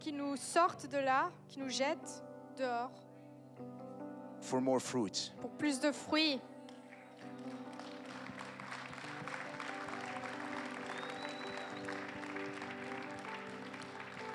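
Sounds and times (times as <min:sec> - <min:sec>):
speech: 0:00.0 - 0:03.8, 0:04.4 - 0:06.5, 0:07.4 - 0:07.9
sustained low musical tones: 0:05.4 - 0:14.3
audience clapping: 0:06.7 - 0:14.3.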